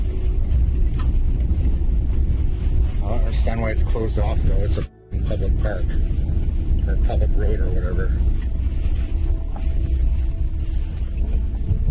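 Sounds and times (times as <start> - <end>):
car engine and road rumble: 0.0 - 11.8
speech: 3.4 - 8.4.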